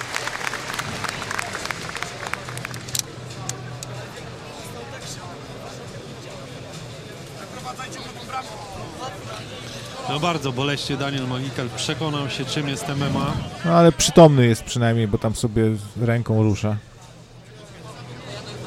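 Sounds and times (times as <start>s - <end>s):
audience applause: 0.0s - 3.0s
speech: 8.3s - 16.9s.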